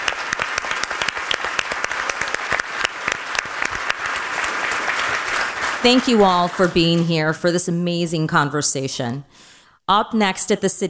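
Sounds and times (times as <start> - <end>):
audience applause: 0.0 - 7.0
speech: 5.8 - 10.8.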